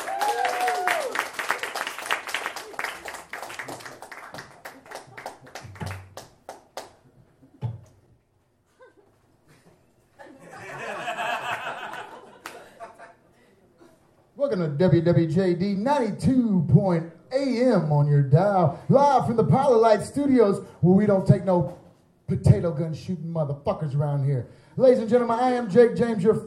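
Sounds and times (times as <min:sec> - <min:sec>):
audience clapping for a host: 0:00.0 - 0:07.0, 0:11.4 - 0:12.8
people chuckling and laughing: 0:08.7 - 0:14.0
speech: 0:14.4 - 0:26.4.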